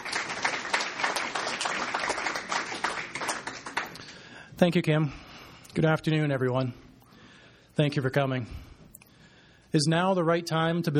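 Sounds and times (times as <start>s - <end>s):
audience round of applause: 0.0s - 4.3s
speech: 4.6s - 5.2s, 5.8s - 6.8s, 7.8s - 8.6s, 9.7s - 10.9s.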